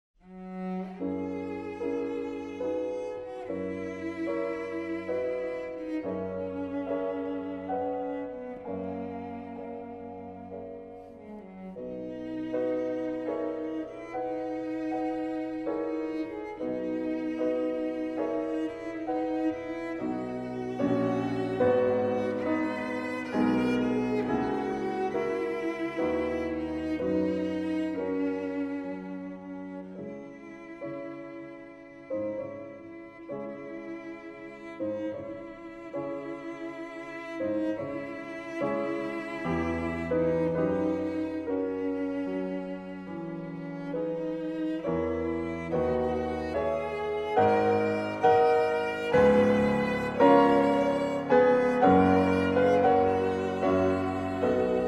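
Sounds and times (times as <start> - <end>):
piano trio: 0.2 - 54.8.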